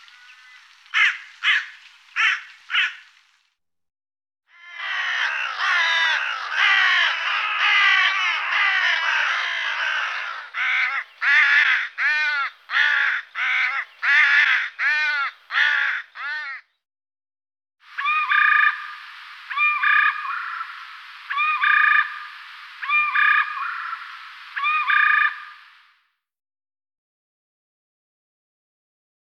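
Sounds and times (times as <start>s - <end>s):
carrion crow: 0.0s - 3.1s, 4.5s - 16.8s, 17.9s - 25.6s.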